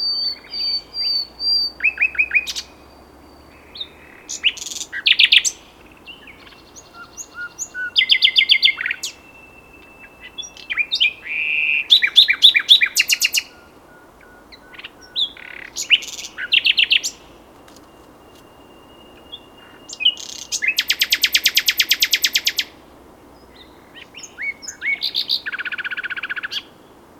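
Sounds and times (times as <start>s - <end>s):
common nightingale singing: 0.0s - 27.0s.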